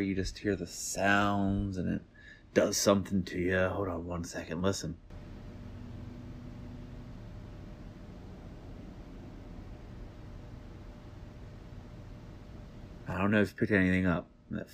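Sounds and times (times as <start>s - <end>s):
speech: 0.0s - 5.0s, 13.2s - 14.7s
swimming pool pump running: 5.1s - 13.1s.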